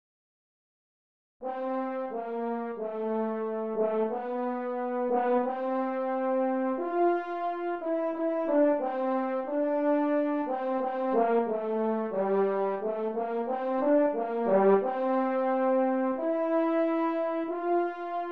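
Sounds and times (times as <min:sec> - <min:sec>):
french horn playing a hymn: 0:01.4 - 0:18.2.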